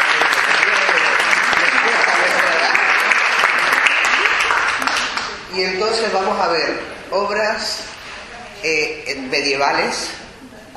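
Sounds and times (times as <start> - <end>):
crowd applauding: 0.0 - 5.5
speech: 6.0 - 7.9, 8.6 - 10.2.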